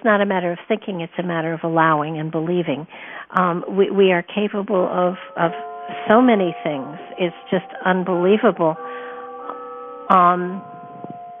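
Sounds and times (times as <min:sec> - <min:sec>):
speech: 0:00.0 - 0:09.1, 0:10.1 - 0:10.7
doorbell ringing: 0:05.0 - 0:11.3.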